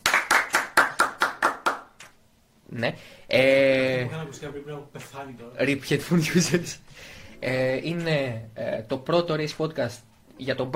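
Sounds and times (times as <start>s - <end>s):
person clapping: 0.0s - 2.2s
speech: 2.8s - 10.7s.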